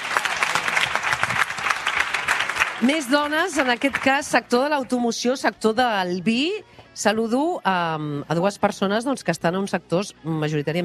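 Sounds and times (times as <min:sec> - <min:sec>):
audience applause at a public event: 0:00.0 - 0:04.4
speech: 0:02.8 - 0:10.8.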